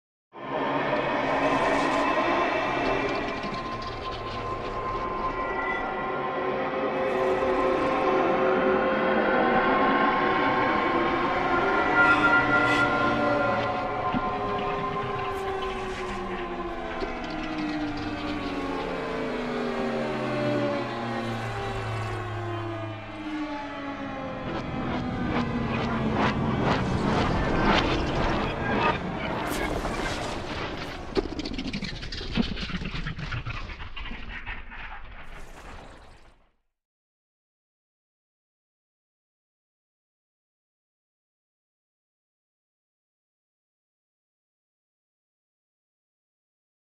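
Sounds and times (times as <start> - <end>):
cinematic suspense sound effects: 0.4 - 36.4.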